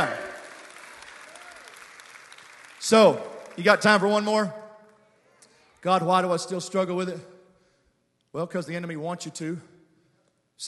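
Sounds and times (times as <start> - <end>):
audience clapping: 0.0 - 4.3
speech: 2.9 - 4.6, 5.8 - 7.3, 8.3 - 9.7.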